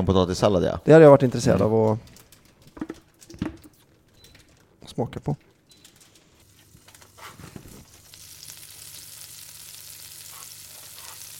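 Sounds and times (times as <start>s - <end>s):
speech: 0.0s - 2.2s, 5.0s - 5.5s
butter sizzling in a frying pan: 6.7s - 11.3s.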